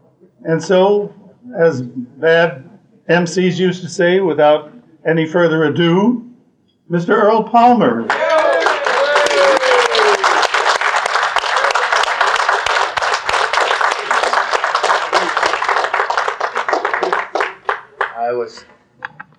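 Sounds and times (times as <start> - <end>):
speech: 0.4 - 6.3, 6.9 - 8.3
whoop: 8.1 - 10.5
audience applause: 8.1 - 18.3.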